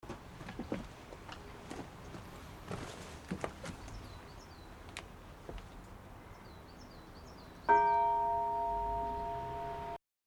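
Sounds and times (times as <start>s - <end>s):
bell ringing: 7.7s - 10.0s.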